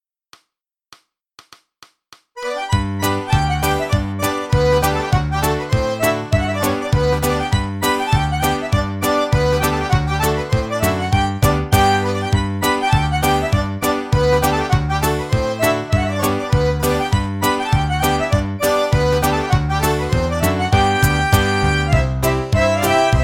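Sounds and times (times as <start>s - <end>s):
traditional Irish polka in G: 2.4s - 23.2s.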